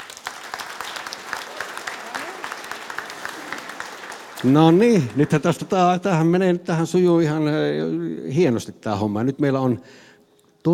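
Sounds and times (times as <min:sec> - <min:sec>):
audience applause: 0:00.0 - 0:06.4
speech: 0:04.4 - 0:10.7.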